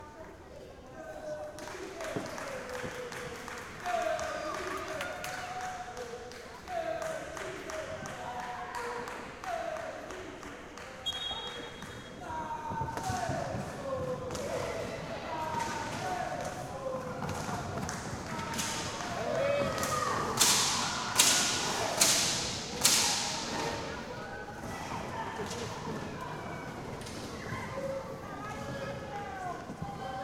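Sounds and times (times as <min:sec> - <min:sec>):
women's league roller hockey match ambience: 0:00.0 - 0:30.2.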